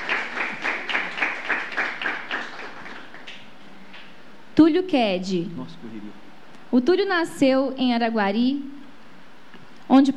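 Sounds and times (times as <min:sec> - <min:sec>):
audience applause: 0:00.0 - 0:03.5
speech: 0:04.6 - 0:08.8, 0:09.9 - 0:10.1.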